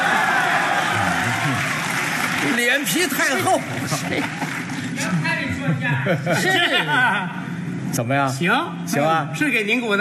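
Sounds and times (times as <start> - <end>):
audience applause: 0.0 - 5.2
speech: 2.8 - 9.9
laughter: 3.3 - 7.6.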